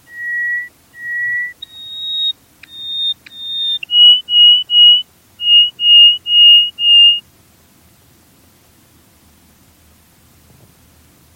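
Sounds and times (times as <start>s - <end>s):
bird whistling: 0.0s - 7.2s.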